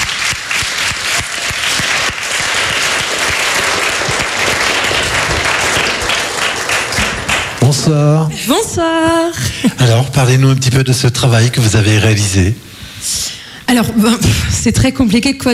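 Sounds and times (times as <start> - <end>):
audience applause: 0.0 - 8.3
speech: 7.7 - 12.7, 13.7 - 15.5.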